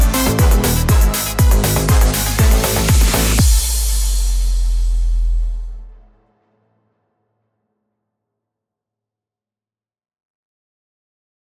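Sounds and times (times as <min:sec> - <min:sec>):
house dance version background vlog music: 0:00.0 - 0:04.7.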